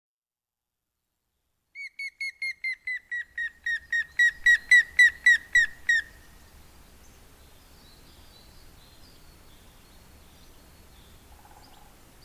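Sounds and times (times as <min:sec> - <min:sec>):
grey-headed woodpecker giving loud ringing whistled notes: 0:01.8 - 0:06.0.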